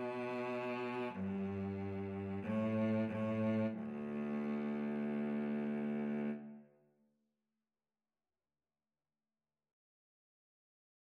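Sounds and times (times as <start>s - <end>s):
violin and cello duet: 0.0s - 6.6s.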